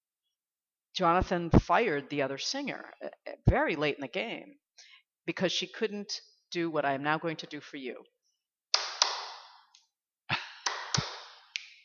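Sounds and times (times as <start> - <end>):
speech: 1.0 - 8.2
hand claps: 8.7 - 9.6, 10.3 - 11.8
finger snaps: 8.7 - 9.9, 10.6 - 11.8.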